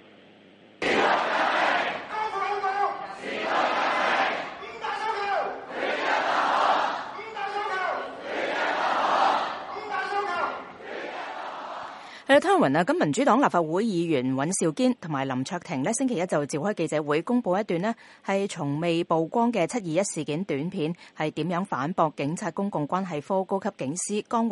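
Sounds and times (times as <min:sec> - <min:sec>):
rally crowd chanting slogans in unison: 0:00.8 - 0:12.1
speech: 0:12.4 - 0:24.5.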